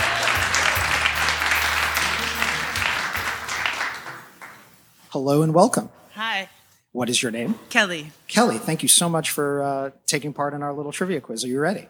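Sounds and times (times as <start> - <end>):
studio audience applause for a quiz contestant: 0.0 - 4.6
speech: 5.2 - 11.8.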